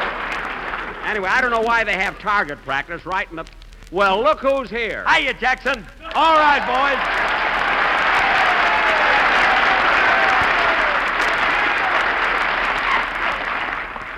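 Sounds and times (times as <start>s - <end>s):
large audience applause: 0.0s - 1.7s, 6.0s - 14.1s
speech: 1.1s - 7.2s.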